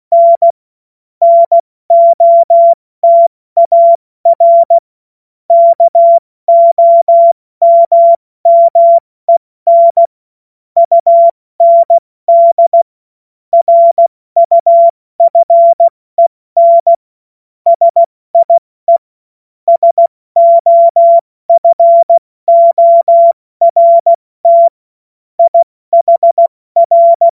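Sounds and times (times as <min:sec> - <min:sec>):
CW Morse code beeps: 0:00.1 - 0:00.6, 0:01.2 - 0:04.8, 0:05.5 - 0:09.0, 0:09.7 - 0:10.1, 0:10.8 - 0:12.9, 0:13.6 - 0:15.9, 0:16.6 - 0:17.0, 0:17.7 - 0:19.0, 0:19.7 - 0:24.7, 0:25.4 - 0:27.3.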